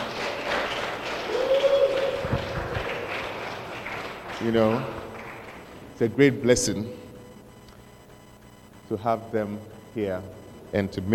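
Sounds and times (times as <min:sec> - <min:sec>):
audience applauding: 0:00.0 - 0:06.0
speech: 0:04.4 - 0:05.0, 0:06.0 - 0:07.0, 0:08.9 - 0:11.1.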